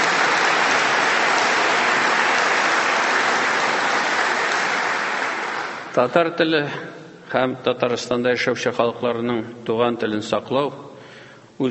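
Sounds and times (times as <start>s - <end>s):
audience applause at a formal event on Tatar language: 0.0s - 6.0s
speech: 6.0s - 10.8s.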